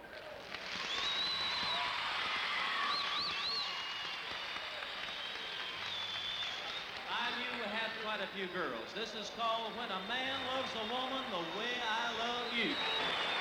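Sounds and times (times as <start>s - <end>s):
audience applause: 0.0s - 13.3s
high-pitched shrieks and whistles: 0.8s - 2.0s, 2.8s - 4.0s, 5.0s - 7.0s, 11.6s - 13.3s
speech: 8.2s - 13.0s.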